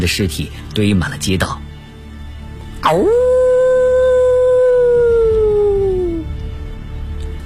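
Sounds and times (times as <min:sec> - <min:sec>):
speech: 0:00.0 - 0:01.7, 0:02.8 - 0:03.4
wolves howling: 0:02.8 - 0:06.3.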